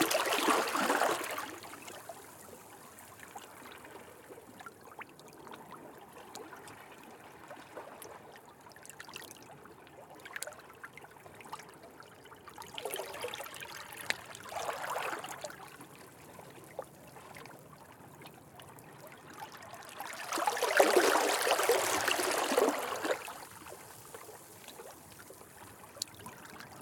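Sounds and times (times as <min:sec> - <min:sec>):
very close small ocean waves flowing between rocks in Brittany: 0:00.0 - 0:04.2, 0:12.8 - 0:17.4, 0:19.0 - 0:26.8.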